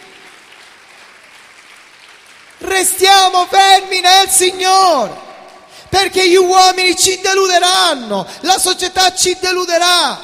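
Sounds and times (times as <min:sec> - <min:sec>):
church congregation applauding during a service: 0:00.0 - 0:06.6
speech: 0:02.8 - 0:05.3, 0:05.9 - 0:10.2.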